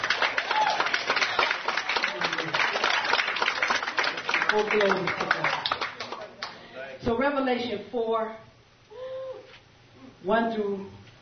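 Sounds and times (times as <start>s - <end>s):
audience clapping: 0.0s - 6.7s
speech: 4.5s - 5.5s, 7.0s - 8.5s, 10.2s - 11.0s.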